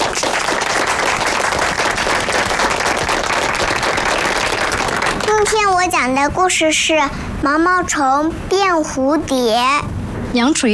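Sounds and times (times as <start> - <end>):
classroom applause: 0.0 - 5.8
speech: 5.5 - 10.7.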